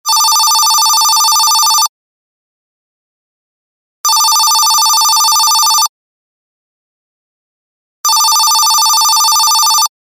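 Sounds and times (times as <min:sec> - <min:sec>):
telephone ringing: 0:00.1 - 0:01.9, 0:04.1 - 0:05.9, 0:08.0 - 0:09.9.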